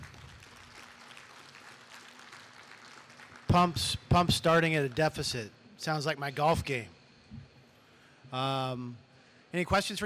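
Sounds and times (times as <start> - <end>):
audience applause: 0.0 - 3.7
speech: 3.5 - 7.0, 8.3 - 10.0.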